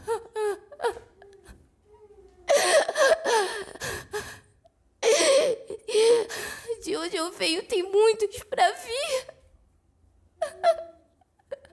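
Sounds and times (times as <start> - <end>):
woman sobbing with relief: 0.0 - 1.4, 2.5 - 6.9, 10.4 - 11.7
speech: 7.0 - 9.4.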